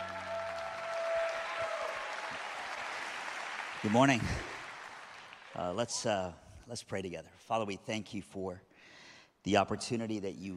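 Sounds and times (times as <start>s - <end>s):
church service audience clapping to welcome a speaker: 0.0s - 6.1s
speech: 3.8s - 4.5s, 5.6s - 8.7s, 9.4s - 10.5s.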